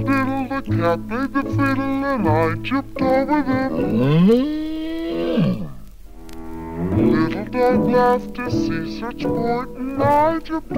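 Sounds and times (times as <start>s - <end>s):
speech: 0.6s - 4.6s, 5.2s - 5.7s, 7.5s - 10.7s
cow mooing: 3.7s - 5.8s.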